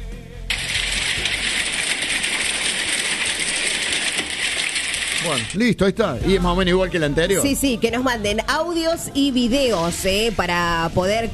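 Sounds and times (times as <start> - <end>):
hail falling: 0.5 - 5.6
speech: 5.2 - 11.3.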